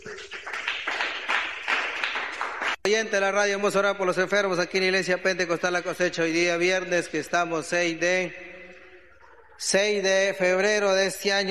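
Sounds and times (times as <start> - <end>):
audience applause: 0.0 - 2.8
speech: 2.8 - 8.4, 9.6 - 11.4.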